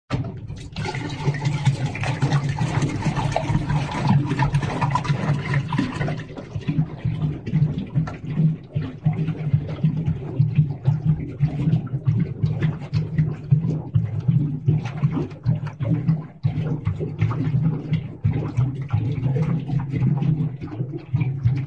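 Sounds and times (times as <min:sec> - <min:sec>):
small cartoon water bubbles: 0:00.1 - 0:21.6.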